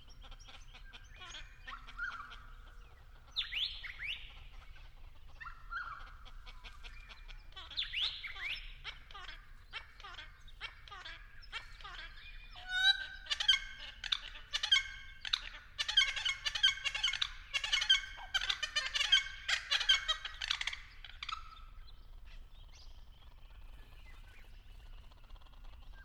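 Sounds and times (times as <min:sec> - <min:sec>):
friarbird calling raucously: 0:00.0 - 0:26.0.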